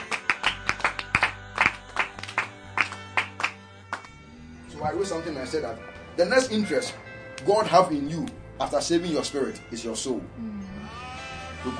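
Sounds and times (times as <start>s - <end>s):
audience clapping in rhythm: 0.0s - 4.3s
speech: 4.8s - 10.5s.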